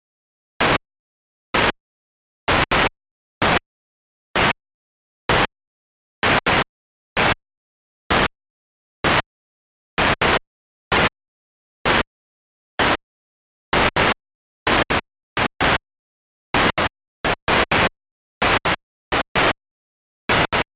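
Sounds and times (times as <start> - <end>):
noise: 0.6 - 0.8, 1.5 - 1.8, 2.5 - 3.7, 4.4 - 4.6, 5.3 - 5.5, 6.2 - 7.4, 8.1 - 8.3, 9.0 - 9.3, 10.0 - 11.2, 11.8 - 12.1, 12.8 - 13.0, 13.7 - 15.8, 16.5 - 19.6, 20.3 - 20.7.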